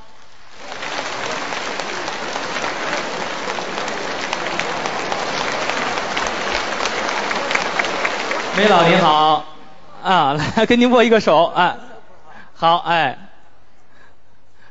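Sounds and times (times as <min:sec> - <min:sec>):
audience applause: 0:00.3 - 0:09.2
speech: 0:08.6 - 0:09.4, 0:10.0 - 0:11.9, 0:12.6 - 0:13.2.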